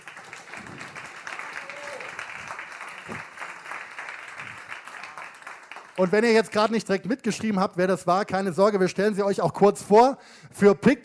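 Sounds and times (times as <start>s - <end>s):
audience applause at a live reporter slam event: 0.0s - 6.7s
speech: 6.0s - 11.0s.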